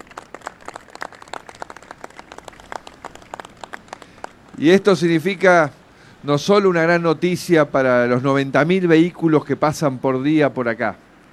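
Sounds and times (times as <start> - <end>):
audience applause: 0.0 - 4.7
speech: 4.6 - 11.0.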